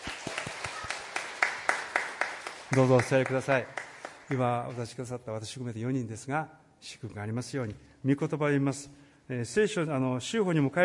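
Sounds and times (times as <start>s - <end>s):
small group clapping for a July birthday at a church gathering: 0.0s - 4.8s
speech: 2.7s - 10.8s.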